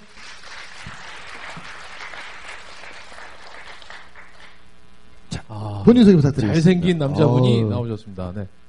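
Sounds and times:
audience applause: 0:00.0 - 0:04.6
speech: 0:05.8 - 0:08.6.

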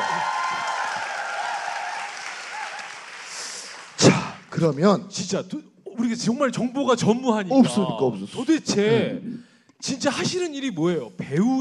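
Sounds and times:
audience applause: 0:00.0 - 0:04.8
speech: 0:04.0 - 0:11.5.

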